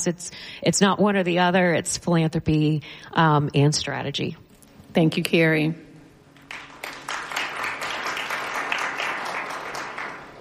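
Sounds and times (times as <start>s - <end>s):
speech: 0.0s - 5.8s
audience applause: 6.4s - 10.4s.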